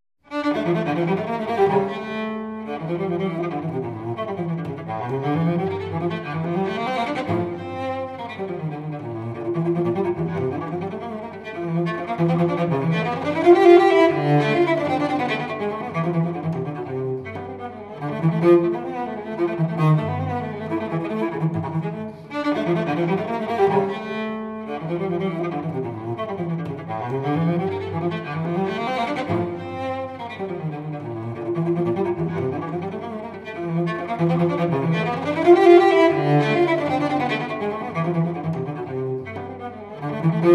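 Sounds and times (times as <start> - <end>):
solo cello courante in D minor: 0.2 - 40.5.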